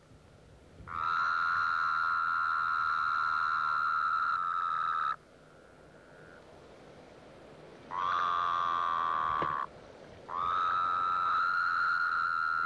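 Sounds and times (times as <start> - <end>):
Wyoming toad calling: 0.8 - 6.5, 7.9 - 12.6.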